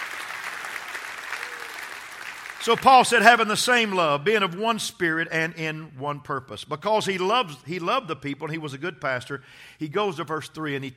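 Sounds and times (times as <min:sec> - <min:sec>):
audience clapping hands: 0:00.0 - 0:03.5
speech: 0:02.6 - 0:10.9.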